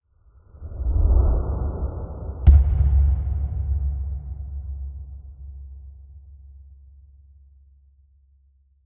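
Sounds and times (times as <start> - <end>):
slow motion whoosh: 0.2 - 6.3.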